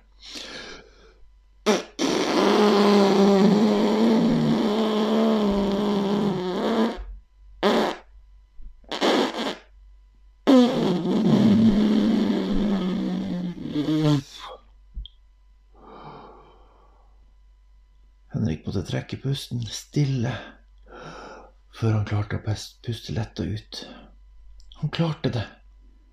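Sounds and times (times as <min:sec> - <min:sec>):
fake beaver call blown against thumb: 0:01.6 - 0:08.1, 0:08.8 - 0:09.7, 0:10.4 - 0:14.6
speech: 0:18.9 - 0:20.6, 0:21.8 - 0:24.0, 0:24.8 - 0:25.6.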